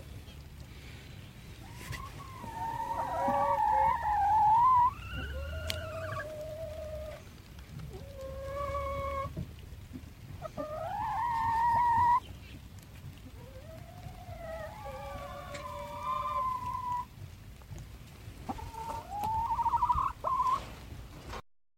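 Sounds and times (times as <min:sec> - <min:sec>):
chicken calling: 0:01.6 - 0:09.4, 0:10.4 - 0:12.3, 0:13.2 - 0:17.2, 0:18.4 - 0:20.8.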